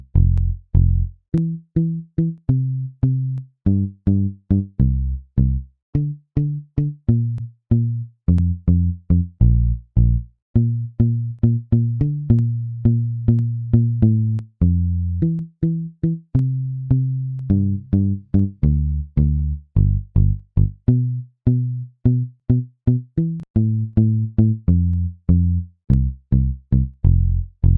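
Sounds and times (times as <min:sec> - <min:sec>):
music beat: 0:00.2 - 0:05.0, 0:06.0 - 0:27.7.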